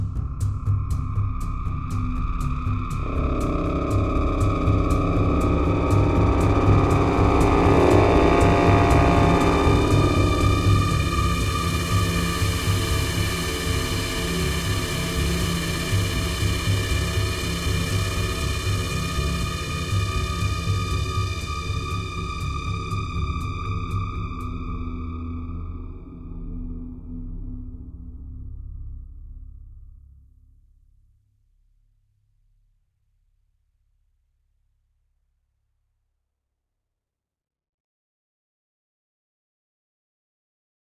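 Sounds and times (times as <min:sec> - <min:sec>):
ambient drums: 0:00.0 - 0:25.2.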